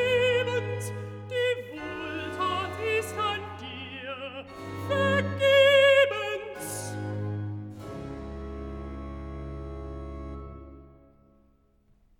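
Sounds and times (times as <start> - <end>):
alto singing recitative: 0.0 - 7.4.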